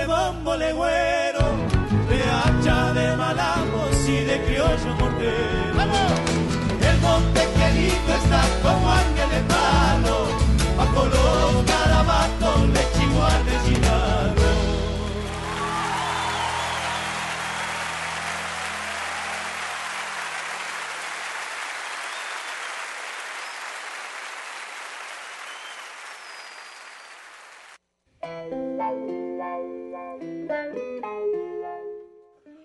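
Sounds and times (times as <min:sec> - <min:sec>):
person singing: 0:00.0 - 0:15.0
speech: 0:00.3 - 0:01.1
applause: 0:14.9 - 0:27.8.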